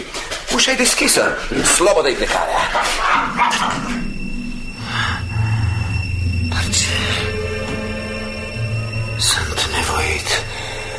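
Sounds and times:
speech: 0.6 - 4.0
low rumbling hum: 2.6 - 10.9
dog barking: 2.9 - 3.9.

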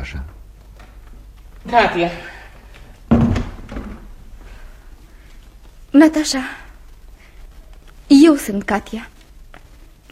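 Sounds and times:
speech: 1.6 - 2.3, 6.0 - 6.6, 8.1 - 9.1
door opened to let a visitor in: 3.1 - 4.1.

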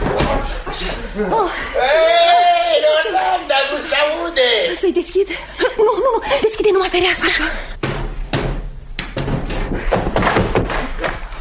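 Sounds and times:
speech: 0.4 - 2.1, 4.0 - 7.7
laughter: 0.4 - 4.2, 5.1 - 7.5
knocking on a door: 7.8 - 10.8.

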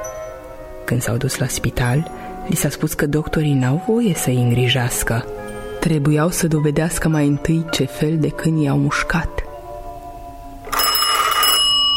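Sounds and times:
speech: 0.9 - 9.4
telephone ringing with a bright electronic tone: 10.6 - 11.9.

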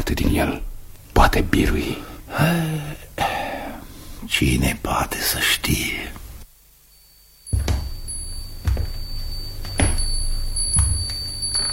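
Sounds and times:
speech: 0.1 - 3.3, 4.2 - 6.2
crystal wind chimes ringing: 6.9 - 11.7.

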